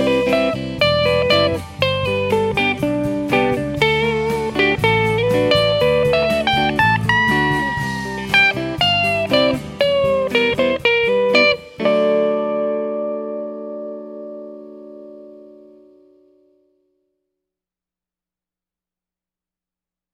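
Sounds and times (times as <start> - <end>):
guitar solo: 0.0 - 16.8.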